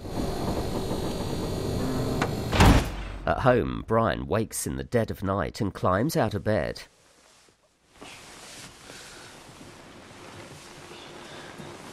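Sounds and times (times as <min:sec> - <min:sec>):
low steady motor rumble: 0:00.0 - 0:02.7
armoured vehicle's heavy mechanical door grinding shut: 0:00.0 - 0:03.3
heavy thud of door: 0:00.3 - 0:03.3
speech: 0:03.3 - 0:07.0.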